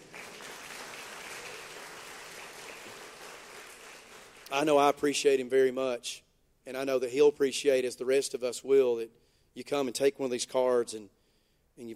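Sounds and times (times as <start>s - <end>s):
audience clapping: 0.0s - 4.8s
speech: 4.5s - 11.2s, 11.8s - 11.9s.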